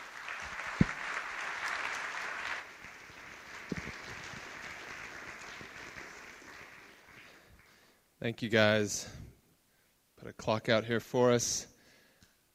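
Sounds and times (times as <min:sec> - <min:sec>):
audience applause: 0:00.0 - 0:07.9
speech: 0:08.2 - 0:09.2, 0:10.4 - 0:11.7.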